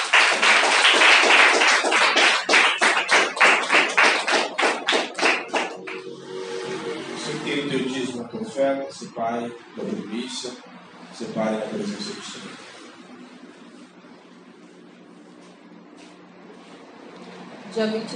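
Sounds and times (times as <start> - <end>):
audience clapping: 0.0 - 6.2
low hum: 5.4 - 15.8
speech: 8.5 - 12.6, 17.8 - 18.1.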